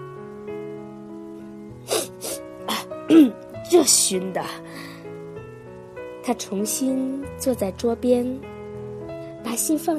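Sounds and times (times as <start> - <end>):
person blowing nose into a handkerchief: 1.9 - 2.4
speech: 3.1 - 4.7, 6.3 - 8.6, 9.6 - 9.9.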